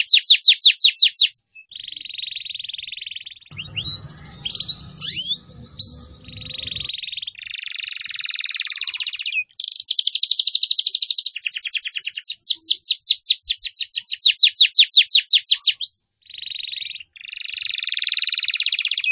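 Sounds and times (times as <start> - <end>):
Atlantic canary singing: 0.0 - 19.0
low background rumble: 3.5 - 7.0.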